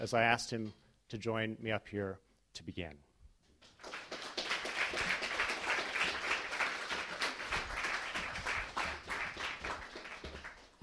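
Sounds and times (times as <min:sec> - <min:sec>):
speech: 0:00.0 - 0:03.1
audience clapping: 0:03.6 - 0:10.8.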